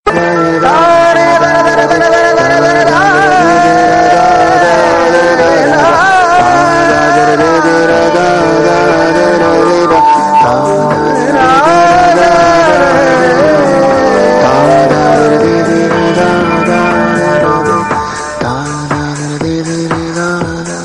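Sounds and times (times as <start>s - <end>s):
Telugu background music ringtone: 0.1s - 20.8s.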